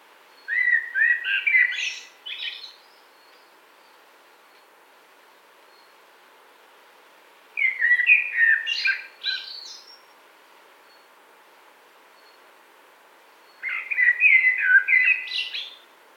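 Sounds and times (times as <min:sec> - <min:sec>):
common blackbird song: 0:00.3 - 0:04.6, 0:05.7 - 0:06.0, 0:07.6 - 0:10.2, 0:13.3 - 0:15.9.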